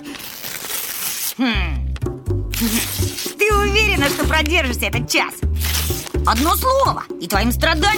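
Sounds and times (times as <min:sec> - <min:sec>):
styrofoam rubbed against glass: 0:00.1 - 0:01.4, 0:02.5 - 0:04.4, 0:05.5 - 0:06.6
speech: 0:01.4 - 0:01.7, 0:04.4 - 0:05.5, 0:06.3 - 0:07.9.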